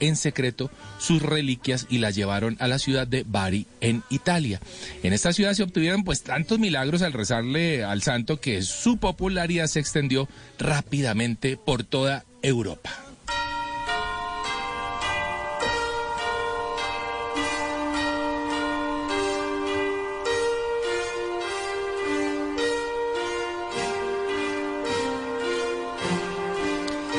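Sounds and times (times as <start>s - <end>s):
speech: 0.0s - 13.4s
church bells: 13.3s - 27.1s
film soundtrack music: 14.9s - 27.1s.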